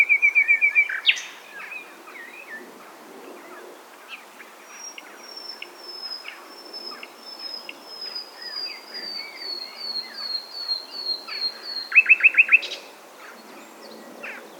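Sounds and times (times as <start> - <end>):
common nightingale Luscinia megarhynchos singing staccato rattles and high notes: 0.0 - 2.5, 4.7 - 12.8.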